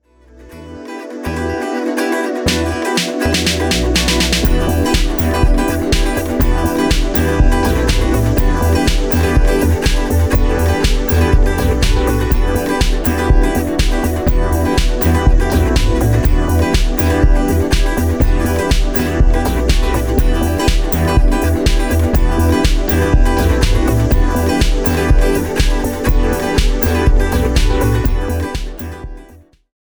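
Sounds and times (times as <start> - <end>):
122 bpm remix: 0.5 - 29.4.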